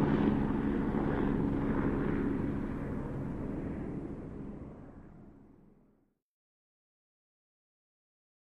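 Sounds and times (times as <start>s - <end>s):
Apache helicopter passing over: 0.0s - 5.9s.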